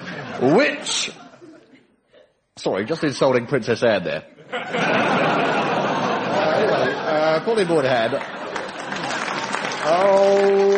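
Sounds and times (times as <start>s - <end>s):
laughter: 0.0s - 3.2s, 4.3s - 10.7s
speech: 0.4s - 1.2s, 2.6s - 5.5s, 7.1s - 8.4s, 9.8s - 10.7s
quiz show studio audience applause: 7.8s - 10.7s.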